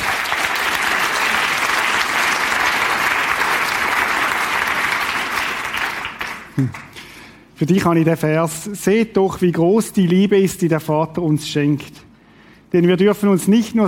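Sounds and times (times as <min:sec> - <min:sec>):
group applauding: 0:00.0 - 0:07.2
speech: 0:06.6 - 0:06.8, 0:07.6 - 0:12.1, 0:12.7 - 0:13.8.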